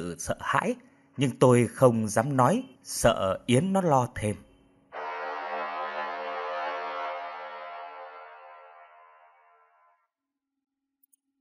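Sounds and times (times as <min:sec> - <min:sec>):
speech: 0:00.0 - 0:04.5
vehicle horn wailing in the night: 0:05.0 - 0:10.0.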